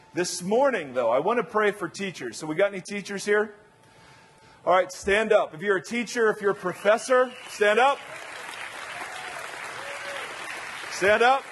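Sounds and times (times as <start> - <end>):
speech: 0.2 - 3.6, 4.6 - 8.2, 11.0 - 11.4
audience clapping: 6.8 - 11.4.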